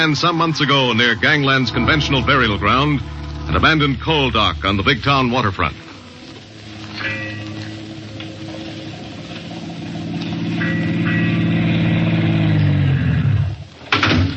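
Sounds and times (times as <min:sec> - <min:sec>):
speech: 0:00.0 - 0:05.8
car engine driving and idling: 0:00.0 - 0:13.8.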